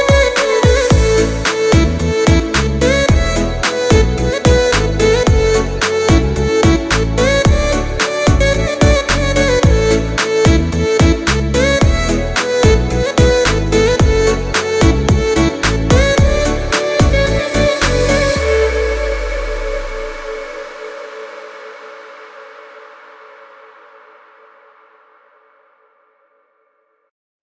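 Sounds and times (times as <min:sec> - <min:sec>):
slow remix beat: 0:00.0 - 0:21.4.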